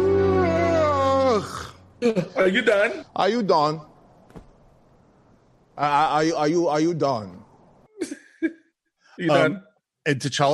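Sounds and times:
imitated yawn: 0.0 - 3.1
speech: 2.0 - 3.9, 5.8 - 7.4, 9.2 - 10.5.

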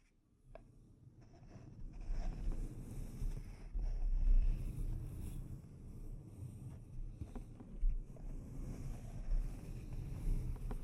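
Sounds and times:
delicate scratching on a microphone: 1.2 - 5.4, 7.2 - 10.8.

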